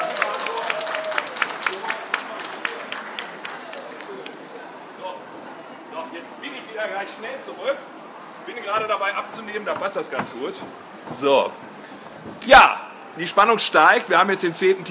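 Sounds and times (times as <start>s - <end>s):
audience applause: 0.0s - 4.4s
speech: 7.0s - 7.9s, 8.5s - 11.7s, 12.4s - 14.8s.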